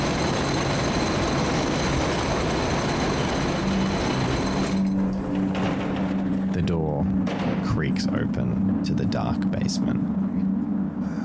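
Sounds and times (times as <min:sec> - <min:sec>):
rattling elevator ride: 0:00.0 - 0:09.3
low droning hum: 0:02.4 - 0:11.2
speech: 0:08.2 - 0:10.3.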